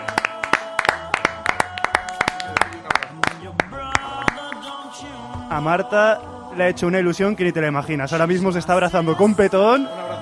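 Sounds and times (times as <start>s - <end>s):
audience clapping: 0.0s - 4.7s
speech: 5.5s - 10.0s.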